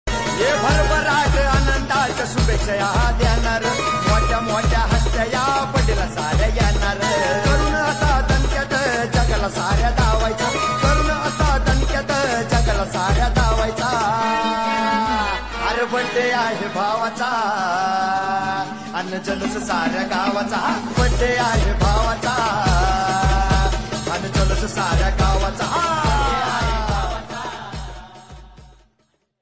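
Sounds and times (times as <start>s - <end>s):
birthday song: 0.1s - 28.6s.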